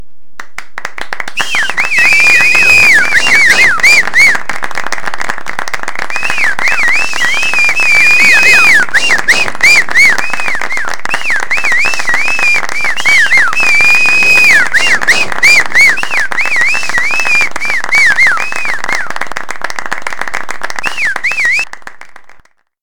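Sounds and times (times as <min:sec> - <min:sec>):
person cheering: 0:01.4 - 0:04.6, 0:06.0 - 0:19.2.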